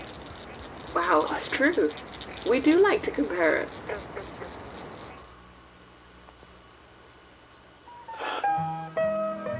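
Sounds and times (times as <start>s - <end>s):
green frog call: 0.0s - 5.4s
low steady hum: 0.0s - 9.5s
speech: 1.0s - 4.6s.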